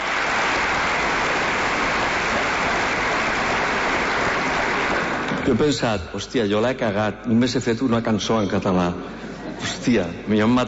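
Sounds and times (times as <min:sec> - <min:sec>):
audience applause: 0:00.0 - 0:05.6
speech: 0:05.5 - 0:10.6.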